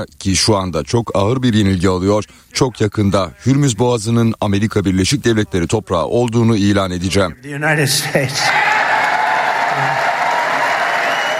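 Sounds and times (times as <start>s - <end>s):
speech: 0.0s - 8.7s
applause in a hall after remarks by US President Donald Trump: 8.5s - 11.3s.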